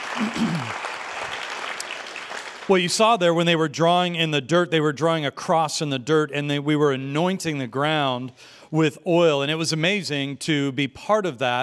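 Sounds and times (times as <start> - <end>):
audience applause at a church service: 0.0 - 3.2
speech: 0.2 - 0.9, 2.7 - 11.6.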